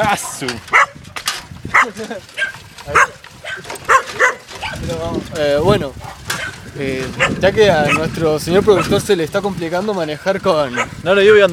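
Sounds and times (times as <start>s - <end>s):
speech: 0.0s - 0.8s, 1.8s - 3.2s, 4.8s - 6.2s, 6.8s - 11.5s
dogs barking: 0.1s - 1.0s, 1.7s - 4.9s, 5.9s - 9.0s, 10.6s - 11.1s.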